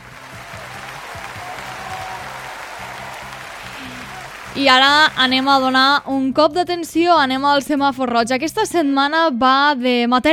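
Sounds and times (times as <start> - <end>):
applause: 0.0 - 6.0
speech: 4.6 - 10.3.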